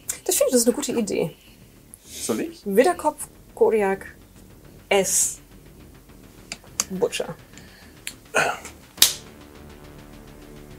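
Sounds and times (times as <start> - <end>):
speech: 0.3 - 1.5, 2.2 - 4.2, 4.9 - 5.4, 6.9 - 7.5, 8.4 - 8.7
finger snapping: 9.0 - 9.2.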